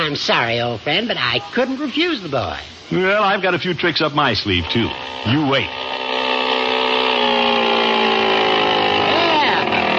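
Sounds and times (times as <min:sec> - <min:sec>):
speech: 0:00.0 - 0:05.9
motor-powered bicycle engine running: 0:03.9 - 0:09.9.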